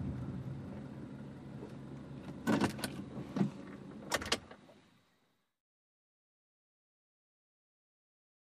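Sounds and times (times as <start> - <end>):
compact car driving at 55 to 65 mph: 0.0 - 4.1.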